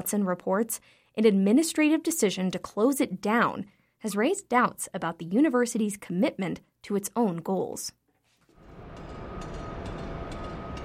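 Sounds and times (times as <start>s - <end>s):
speech: 0.0s - 8.0s
construction site hammering: 8.6s - 10.8s
heavy machinery at a construction site: 8.6s - 10.8s.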